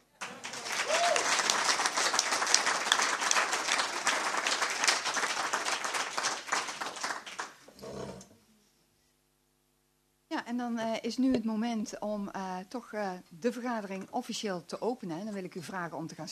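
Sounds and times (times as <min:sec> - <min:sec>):
warm applause: 0:00.0 - 0:07.7
speech: 0:10.6 - 0:16.2.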